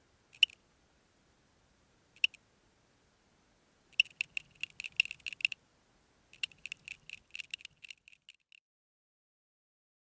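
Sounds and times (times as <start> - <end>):
two-spotted tree cricket chirping: 0.3 - 0.6, 2.2 - 2.4, 3.9 - 5.6, 6.3 - 8.6.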